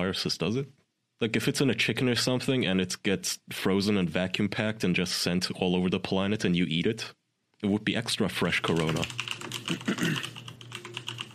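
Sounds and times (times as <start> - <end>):
speech: 0.0 - 10.4
computer keyboard typing: 8.6 - 11.3.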